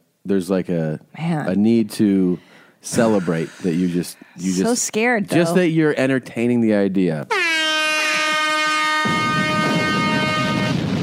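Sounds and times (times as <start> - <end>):
speech: 0.2 - 7.4
celebration air horns: 2.9 - 4.0, 7.3 - 11.0
celebration explosions: 9.1 - 11.0.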